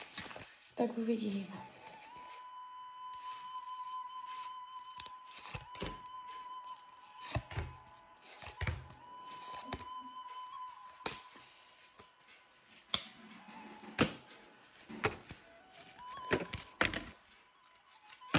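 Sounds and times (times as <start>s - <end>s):
tarot cards falling from a deck: 0.0s - 0.7s, 3.2s - 12.1s, 12.7s - 17.2s, 18.0s - 18.3s
speech: 0.8s - 1.8s.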